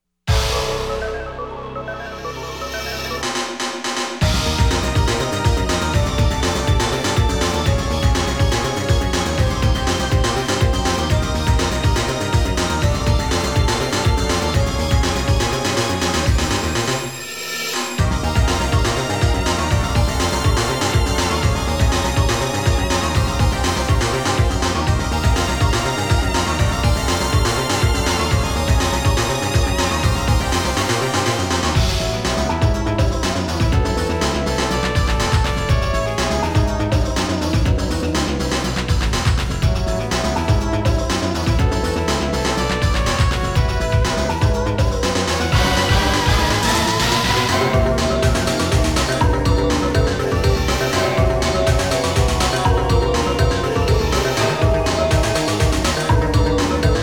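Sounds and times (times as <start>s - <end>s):
underground ambience: 0.3s - 57.0s.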